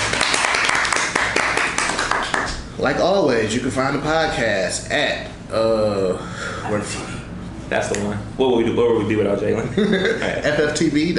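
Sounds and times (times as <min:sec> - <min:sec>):
hand clapping: 0:00.0 - 0:02.6
speech: 0:02.8 - 0:11.1.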